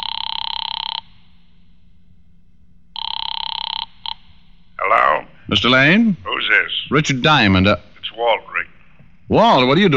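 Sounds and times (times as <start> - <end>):
telephone ringing through an earpiece: 0.0 - 1.3, 3.0 - 4.3
speech: 5.5 - 8.5, 9.3 - 9.9.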